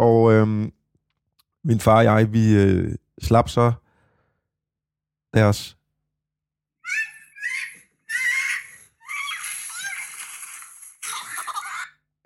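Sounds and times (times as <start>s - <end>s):
speech: 1.6s - 3.8s, 5.3s - 5.8s
people screaming in a sled crash on a steep snowy hill: 6.9s - 10.7s.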